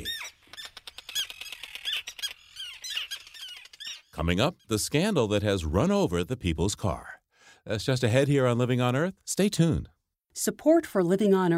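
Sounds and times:
terns calling at a colony on Faulkner Island: 0.0 - 4.8
speech: 4.2 - 7.1, 7.7 - 11.5.

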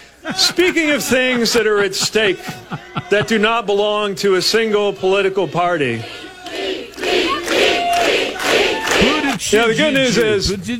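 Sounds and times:
laughter: 0.0 - 3.7
speech: 0.2 - 6.2, 9.5 - 10.7
crowd chanting down a lone chanter: 5.1 - 9.4.

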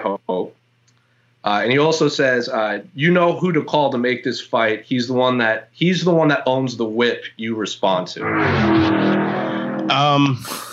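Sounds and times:
speech: 1.4 - 9.3, 9.9 - 10.7
motorcycle driving past outside a window: 8.2 - 10.0.

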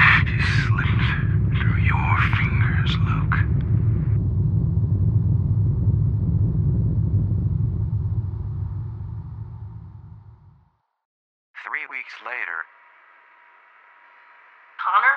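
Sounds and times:
spacecraft fusion engine rumbling: 0.0 - 10.7.

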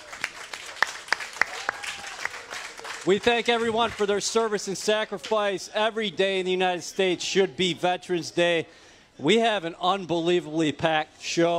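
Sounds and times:
audience round of applause: 0.0 - 4.6
speech: 3.0 - 11.5.

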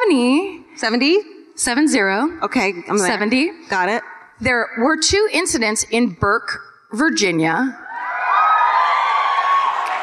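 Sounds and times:
speech: 0.1 - 7.8
cheering: 7.8 - 10.0.

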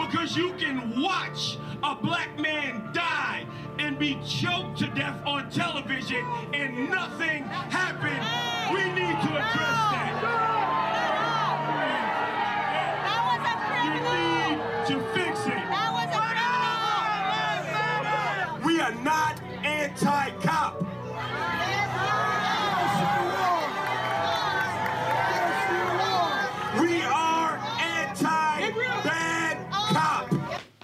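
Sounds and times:
speech: 0.1 - 10.4
crowd jeering and booing: 6.2 - 30.6.

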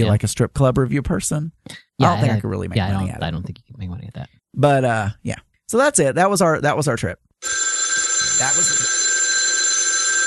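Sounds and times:
speech: 0.0 - 7.6, 8.4 - 9.0
telephone ringing: 7.4 - 10.2.

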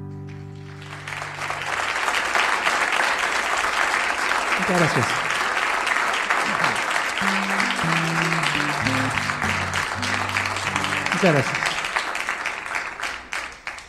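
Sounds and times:
concert audience applause: 0.3 - 13.8
laughter: 4.5 - 5.4, 6.3 - 12.6
speech: 4.7 - 5.3, 11.2 - 11.6
low melodic instrumental line: 7.3 - 11.3.

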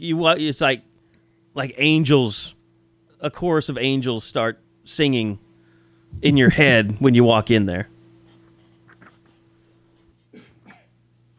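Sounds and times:
speech: 0.0 - 0.9, 1.6 - 2.6, 3.2 - 5.4, 6.1 - 7.9
person coughing while drinking: 10.3 - 11.0.

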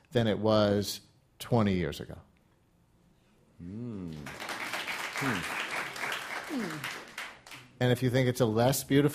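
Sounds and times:
speech: 0.1 - 2.3, 3.6 - 4.4, 5.2 - 5.6, 6.5 - 7.0, 7.8 - 9.1
audience applause: 4.1 - 7.7.

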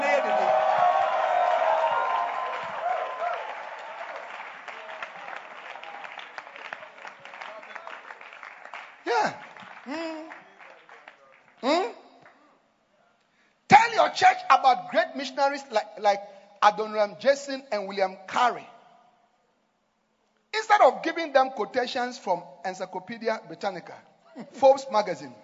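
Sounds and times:
audience shouting and whooping: 0.0 - 6.2
audience clapping: 0.0 - 12.5
speech: 9.2 - 10.1, 14.2 - 18.7, 20.8 - 25.4.

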